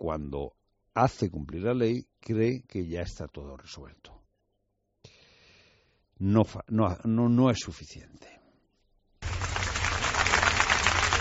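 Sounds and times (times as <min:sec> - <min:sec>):
speech: 0:00.1 - 0:04.2, 0:06.2 - 0:08.4
crowd applause at a farewell: 0:09.2 - 0:11.1.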